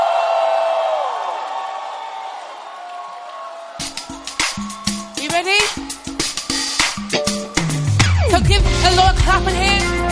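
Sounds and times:
audience shouting: 0:00.0 - 0:08.0
speech: 0:09.1 - 0:10.0.

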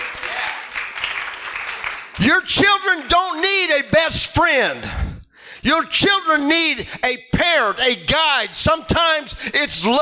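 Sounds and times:
audience hand clapping: 0:00.0 - 0:02.3
speech: 0:02.2 - 0:10.0.

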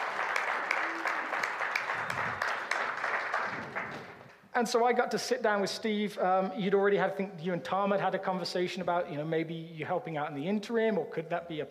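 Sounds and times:
crowd applauding: 0:00.0 - 0:04.4
speech: 0:04.6 - 0:11.6.

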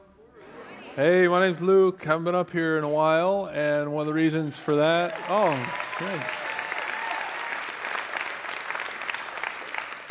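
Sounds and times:
speech: 0:01.0 - 0:06.5
morning church audience cheering and applauding: 0:04.4 - 0:10.1.

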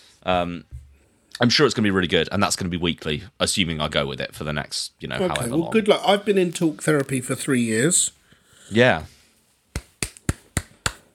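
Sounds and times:
speech: 0:00.2 - 0:00.8, 0:01.4 - 0:09.2
self-applause clapping: 0:09.7 - 0:11.1.

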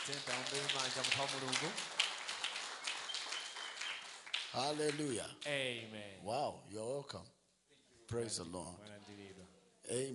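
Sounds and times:
speech: 0:00.0 - 0:02.1, 0:04.5 - 0:07.4, 0:08.1 - 0:10.1
audience clapping: 0:00.0 - 0:05.6.

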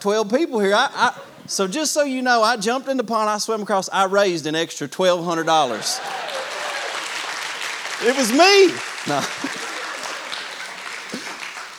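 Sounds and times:
speech: 0:00.0 - 0:06.3, 0:08.0 - 0:09.6
laughter: 0:00.7 - 0:02.2, 0:05.3 - 0:11.7
hand claps: 0:05.8 - 0:11.7.

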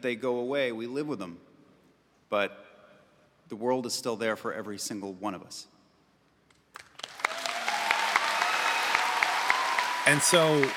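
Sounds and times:
speech: 0:00.0 - 0:01.5, 0:02.3 - 0:02.7, 0:03.5 - 0:05.7, 0:10.1 - 0:10.7
audience applause: 0:07.0 - 0:10.7.

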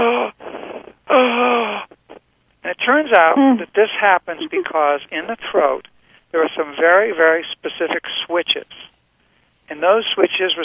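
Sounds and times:
voice imitating noisy strained breathing in: 0:00.0 - 0:02.1
speech: 0:02.9 - 0:08.9, 0:09.7 - 0:10.6.

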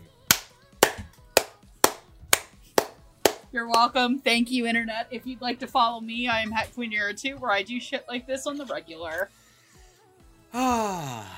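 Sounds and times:
one person clapping slowly: 0:00.3 - 0:03.5
speech: 0:03.5 - 0:09.4, 0:10.5 - 0:11.3.

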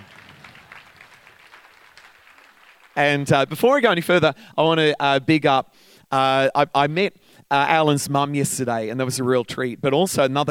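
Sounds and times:
audience clapping: 0:00.0 - 0:03.5
speech: 0:03.0 - 0:10.4.

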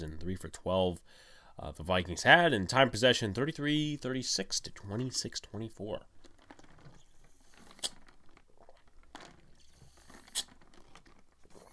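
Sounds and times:
speech: 0:00.2 - 0:06.1
sipping and swallowing from a glass: 0:07.3 - 0:08.8, 0:09.6 - 0:11.7.

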